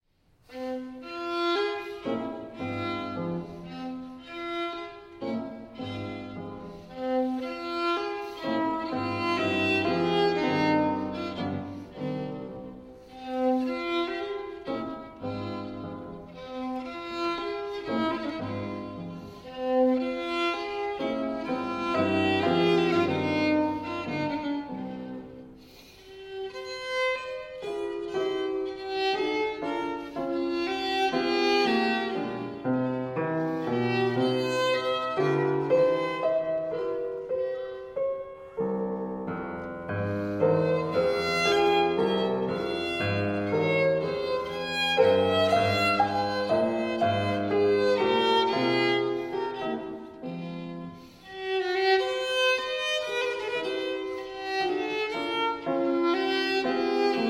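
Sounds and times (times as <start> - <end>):
sonata andante: 0.4 - 57.2.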